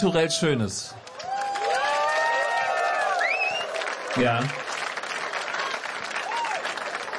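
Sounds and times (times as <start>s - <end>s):
speech: 0.0s - 1.1s, 4.2s - 4.8s
audience applause at outdoor park festival: 1.0s - 7.1s
whistle: 3.2s - 3.7s.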